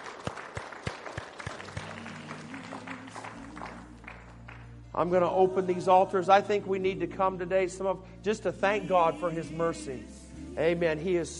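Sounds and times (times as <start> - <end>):
audience hand clapping: 0.0 - 4.8
speech: 5.0 - 11.3.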